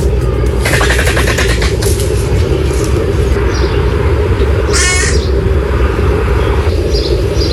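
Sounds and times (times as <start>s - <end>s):
steady low rumble: 0.0s - 7.5s
griffon vultures calling at Zoo Salzburg: 0.6s - 7.5s.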